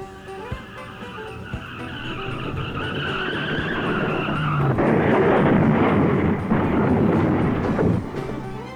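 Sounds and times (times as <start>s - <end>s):
car tires squealing in a long skid during a crash: 0.0s - 8.7s
rumbling car engine noise: 0.0s - 8.7s.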